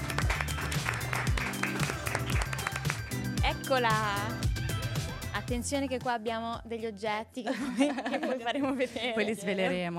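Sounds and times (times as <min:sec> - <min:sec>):
audience applause: 0:00.0 - 0:03.2
upbeat music with a pulsing low beat: 0:00.0 - 0:06.7
speech: 0:03.7 - 0:04.4, 0:05.4 - 0:09.9
laughter: 0:07.5 - 0:09.9.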